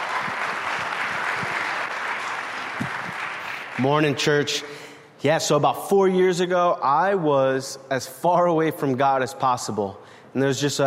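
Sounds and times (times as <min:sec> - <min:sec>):
church congregation applauding to welcome a speaker: 0:00.0 - 0:04.8
speech: 0:03.8 - 0:10.8.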